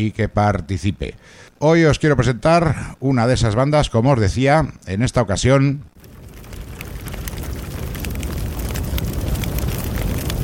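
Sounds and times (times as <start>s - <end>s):
speech: 0.0s - 6.1s
fire crackling: 5.9s - 10.4s
deep continuous roar: 6.0s - 10.4s.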